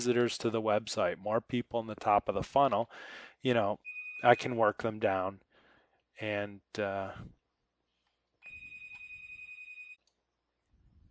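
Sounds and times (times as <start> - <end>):
speech: 0.0 - 5.4, 6.2 - 7.4
telephone ringing on several phone lines: 8.4 - 10.0.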